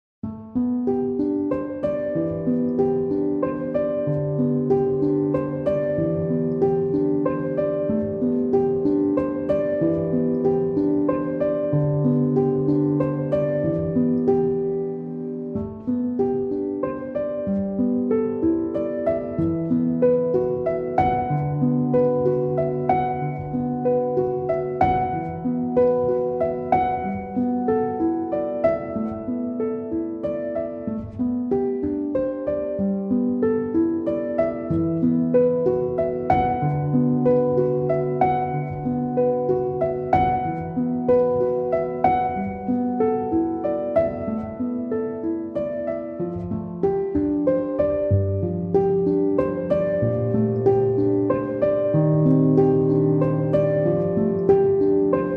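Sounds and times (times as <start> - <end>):
solo piano: 0.2 - 55.3.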